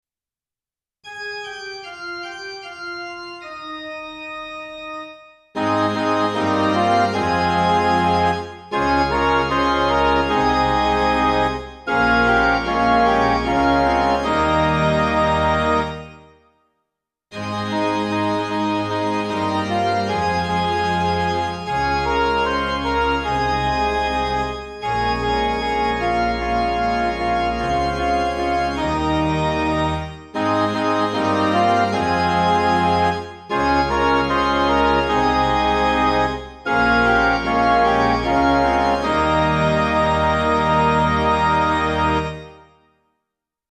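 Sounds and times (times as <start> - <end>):
MIDI music: 5.6 - 16.2, 17.4 - 42.6.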